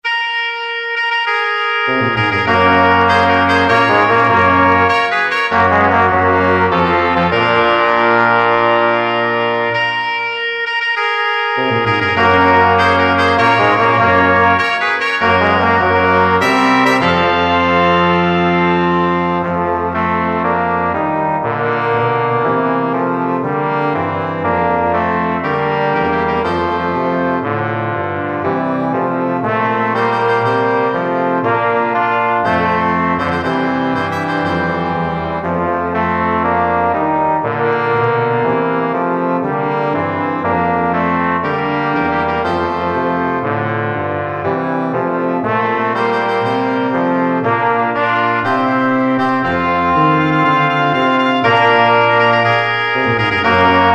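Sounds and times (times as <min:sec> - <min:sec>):
honour fanfare: 0:00.0 - 0:53.9.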